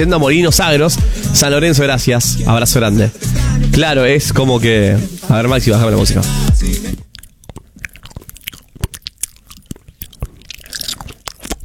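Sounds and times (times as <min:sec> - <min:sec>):
speech: 0:00.0 - 0:06.8
person chewing and crunching noisily while eating: 0:05.9 - 0:11.6.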